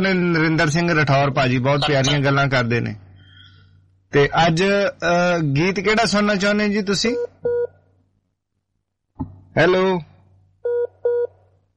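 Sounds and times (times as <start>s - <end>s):
speech: 0.0s - 3.0s, 4.1s - 7.3s, 9.6s - 10.1s
telephone line tone after a call drops from a network problem: 7.2s - 7.7s, 10.7s - 11.3s.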